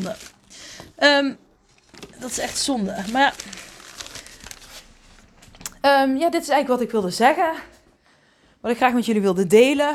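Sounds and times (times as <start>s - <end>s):
speech: 0.0s - 1.4s, 2.2s - 3.7s, 5.8s - 7.7s, 8.6s - 9.9s
stack of comic magazines rustling while handled: 1.6s - 5.7s.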